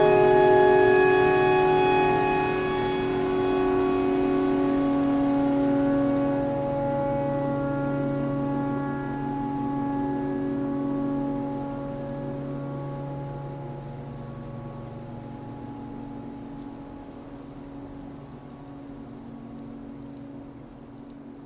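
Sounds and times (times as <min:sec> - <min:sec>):
pentatonic clarinet notes: 0:00.0 - 0:14.4
tornado siren: 0:00.0 - 0:21.4.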